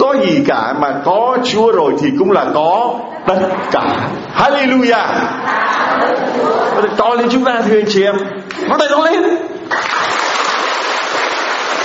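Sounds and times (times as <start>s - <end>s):
speech: 0.2s - 10.1s
applause: 9.7s - 11.8s.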